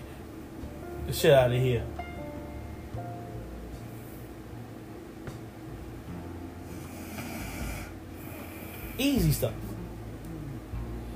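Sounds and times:
speech: 1.1s - 2.0s, 9.0s - 9.7s
woman snoring: 6.6s - 9.0s, 10.2s - 11.1s.

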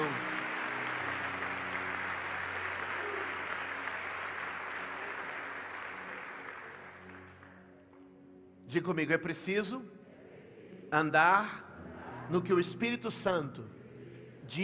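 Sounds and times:
audience applauding: 0.0s - 7.6s
speech: 8.7s - 10.0s, 10.9s - 11.7s, 12.3s - 13.8s, 14.5s - 14.6s.

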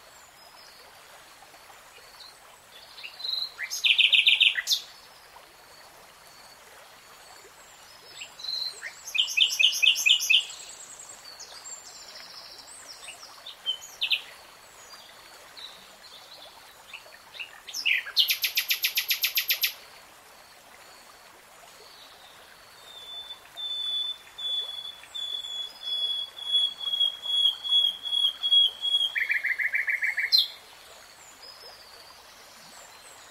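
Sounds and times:
nightingale song: 2.2s - 5.0s, 8.0s - 19.8s, 22.0s - 33.2s.

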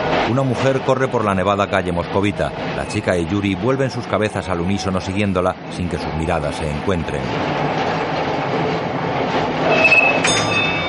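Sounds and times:
tram stopping in a snowy Moscow street: 0.0s - 10.8s
speech: 0.3s - 10.5s
tram wheel squeals: 9.4s - 10.8s.

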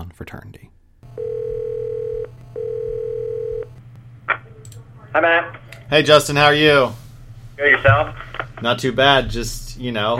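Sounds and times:
speech: 0.1s - 0.8s, 5.2s - 7.0s, 7.6s - 10.1s
telephone dial tone: 1.2s - 3.7s.

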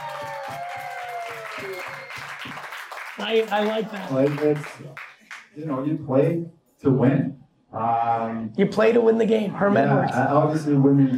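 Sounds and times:
clapping applause: 0.0s - 5.6s
speech: 3.2s - 5.0s, 5.6s - 11.1s.

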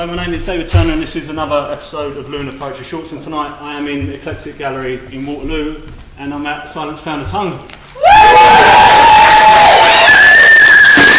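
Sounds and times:
speech: 0.0s - 8.9s
audience cheering and applause at a poetry night in an art gallery in Waterloo: 8.0s - 11.1s
sustained whistling tones: 9.8s - 11.1s.

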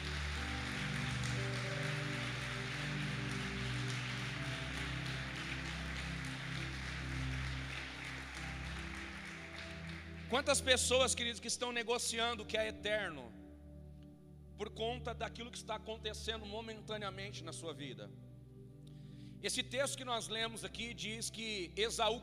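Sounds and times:
audience applauding: 0.0s - 10.6s
low sustained keyboard tones: 0.0s - 11.4s
speech: 10.3s - 13.4s, 14.6s - 18.2s, 19.4s - 22.2s.

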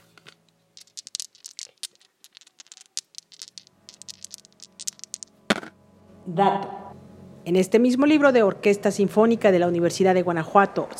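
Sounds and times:
dice being thrown and rolling: 0.0s - 5.8s
speech: 6.3s - 6.8s, 7.4s - 10.9s.

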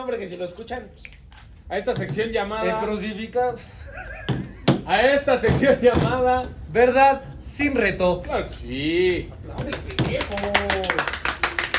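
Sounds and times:
speech: 0.0s - 10.7s
audience applause: 10.2s - 11.7s.

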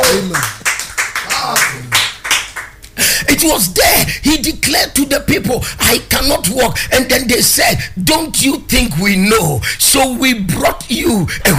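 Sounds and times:
audience applause: 0.0s - 2.8s
speech: 3.4s - 11.5s.

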